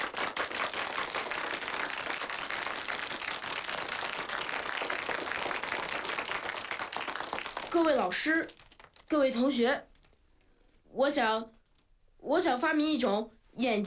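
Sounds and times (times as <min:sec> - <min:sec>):
group clapping: 0:00.0 - 0:09.5
speech: 0:07.8 - 0:09.9, 0:10.9 - 0:11.6, 0:12.2 - 0:13.8.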